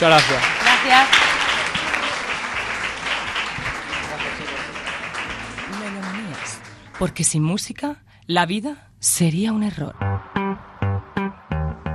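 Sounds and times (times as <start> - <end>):
speech: 0.0 - 1.3, 7.0 - 10.3
applause: 0.0 - 7.5.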